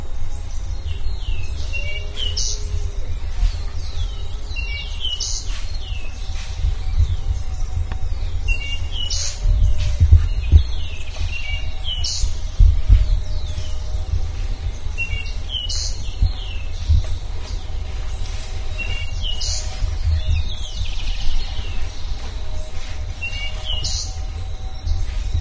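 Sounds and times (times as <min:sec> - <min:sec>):
low rumbling background noise: 0:00.0 - 0:25.3
bird chirps and whistles: 0:00.2 - 0:25.3.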